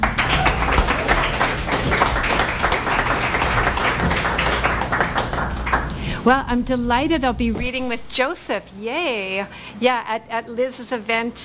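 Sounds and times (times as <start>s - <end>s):
audience applause at a reading event: 0.0s - 6.4s
speech: 6.2s - 11.4s.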